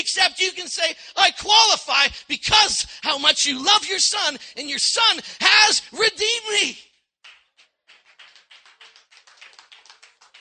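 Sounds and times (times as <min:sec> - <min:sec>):
speech: 0:00.0 - 0:06.9
audience clapping: 0:07.2 - 0:10.3.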